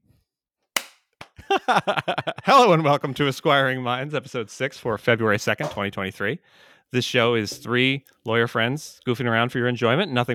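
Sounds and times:
single hand clap marking a take: 0.8s - 1.4s
laughter: 1.4s - 4.5s
speech: 1.5s - 10.3s.

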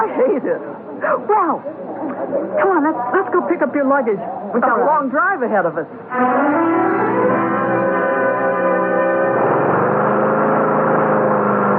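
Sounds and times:
speech: 0.2s - 7.3s
lawn mower running: 6.2s - 11.7s.

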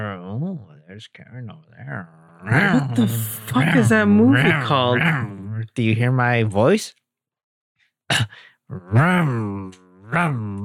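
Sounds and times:
speech: 0.1s - 7.0s, 8.1s - 10.6s
voice imitating engine revving: 1.9s - 5.7s, 8.7s - 10.6s.

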